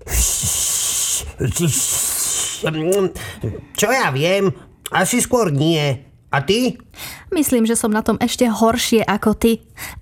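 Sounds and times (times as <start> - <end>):
breathy hiss of air from failed whistling: 0.0 - 3.4
speech: 0.1 - 0.5, 1.4 - 10.0.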